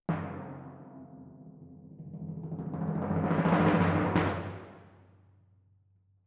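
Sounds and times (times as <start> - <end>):
timpani in F: 0.1 - 5.0.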